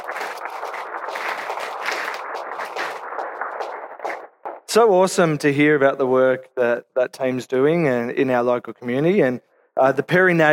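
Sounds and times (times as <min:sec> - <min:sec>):
round of applause: 0:00.0 - 0:04.2
speech: 0:04.7 - 0:10.5.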